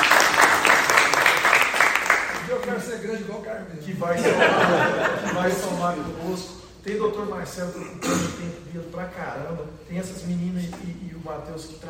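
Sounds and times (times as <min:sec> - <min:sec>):
applause at a meeting: 0:00.0 - 0:03.0
speech: 0:03.0 - 0:04.8, 0:05.4 - 0:11.8
laughter: 0:04.1 - 0:06.1.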